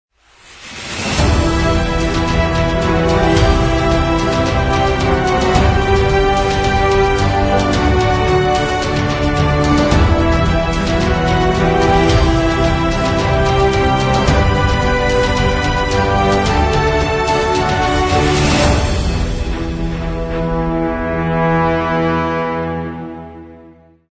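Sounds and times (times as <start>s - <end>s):
epic music: 0.2s - 24.0s.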